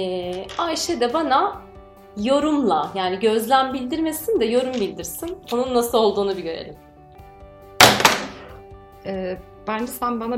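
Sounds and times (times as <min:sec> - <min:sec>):
speech: 0:00.0 - 0:06.9, 0:09.0 - 0:10.3
pen being thrown down: 0:07.8 - 0:08.5.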